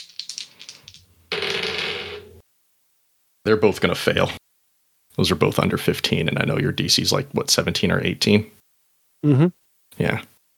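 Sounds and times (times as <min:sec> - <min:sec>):
dice clattering and rolling: 0:00.0 - 0:01.8
speech: 0:03.4 - 0:04.4, 0:05.2 - 0:08.6, 0:09.2 - 0:10.3.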